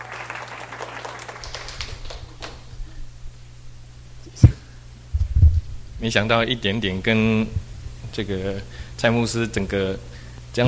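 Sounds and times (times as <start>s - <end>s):
audience clapping hands: 0.0s - 3.0s
speech: 6.0s - 10.6s.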